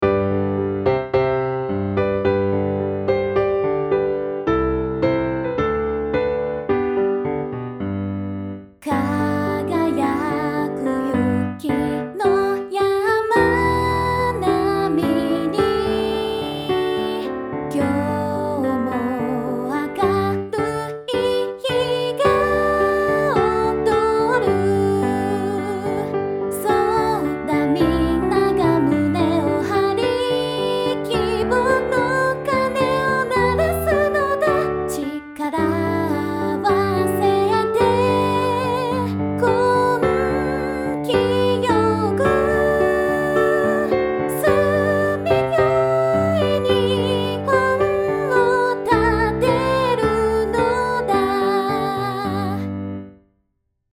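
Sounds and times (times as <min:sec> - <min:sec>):
piano: 0:00.0 - 0:53.4.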